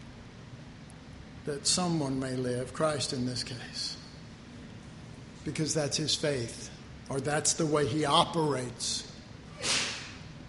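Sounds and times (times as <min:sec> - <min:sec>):
speech: 0:01.5 - 0:04.0, 0:05.4 - 0:09.8
sneeze: 0:09.5 - 0:10.2.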